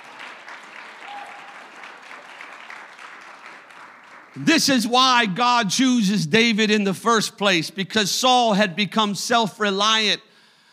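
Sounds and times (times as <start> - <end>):
audience clapping hands: 0.0 - 5.3
speech: 4.4 - 10.3.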